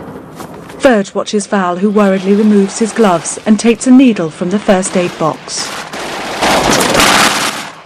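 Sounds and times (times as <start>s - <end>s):
speech: 0.8s - 5.9s
machine gun fire aboard the Memphis Belle bomber: 4.9s - 7.8s.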